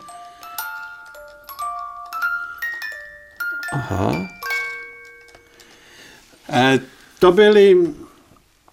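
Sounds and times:
tinkling reed barrel organ playing a simple melody: 0.0 - 6.1
speech: 3.7 - 4.4, 6.6 - 8.0.

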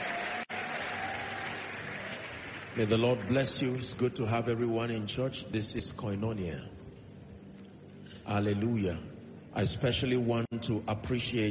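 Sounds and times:
congregation clapping hands during a church service: 0.0 - 4.8
speech: 2.8 - 6.8, 8.3 - 11.4.

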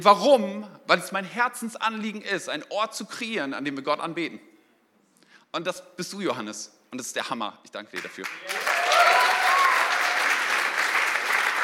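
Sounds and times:
speech: 0.0 - 4.5, 5.5 - 8.7
large audience applause: 8.2 - 11.6
whoops: 8.4 - 10.5.

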